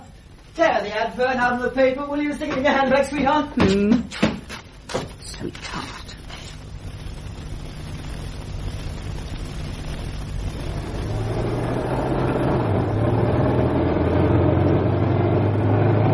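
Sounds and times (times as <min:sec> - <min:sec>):
speech: 0:00.6 - 0:04.2
old car engine running rough: 0:10.5 - 0:16.1.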